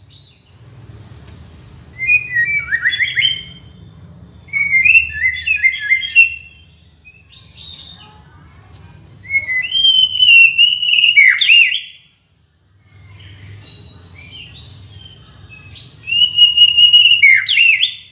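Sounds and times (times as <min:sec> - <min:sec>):
shama from Borneo singing whistled phrases: 0:02.0 - 0:07.9, 0:09.2 - 0:12.0, 0:13.8 - 0:18.1.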